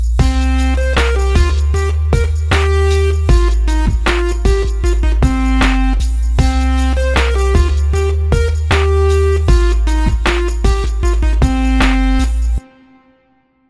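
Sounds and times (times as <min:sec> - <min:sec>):
simple sixteenth note rhythms: 0:00.2 - 0:12.7.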